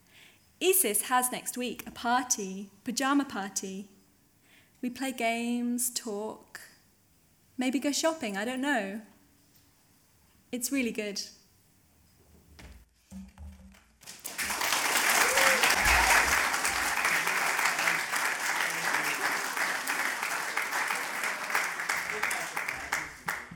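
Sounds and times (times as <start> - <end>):
speech: 0.6 - 3.9, 4.8 - 6.7, 7.6 - 9.1, 10.5 - 11.4
audience applause after a reading: 14.0 - 23.5.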